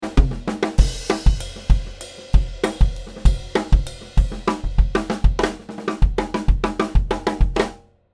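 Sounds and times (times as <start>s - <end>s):
drums: 0.0s - 7.9s.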